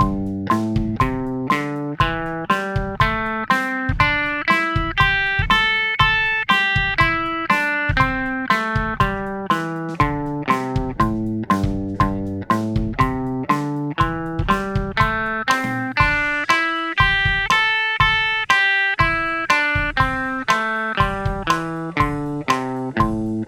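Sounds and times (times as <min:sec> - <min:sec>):
music in A minor: 0:00.0 - 0:23.4.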